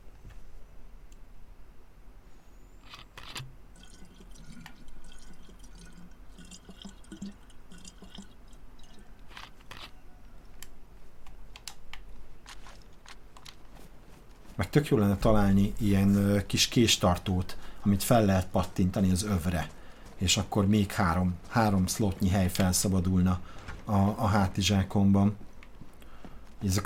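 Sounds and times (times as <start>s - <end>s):
water dripping and trickling as a flask is refilled in a survival video game: 3.6s - 9.2s
speech: 14.8s - 25.4s, 26.6s - 26.8s.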